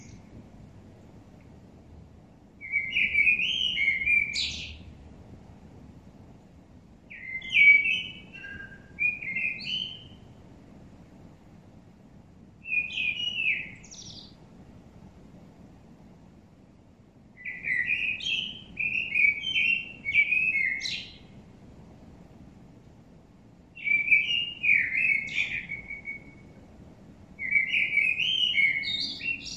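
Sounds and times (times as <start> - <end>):
common blackbird Turdus merula song: 0.0 - 0.4, 2.6 - 5.0, 7.1 - 10.4, 12.6 - 14.4, 17.4 - 21.4, 23.8 - 26.7, 27.4 - 29.5.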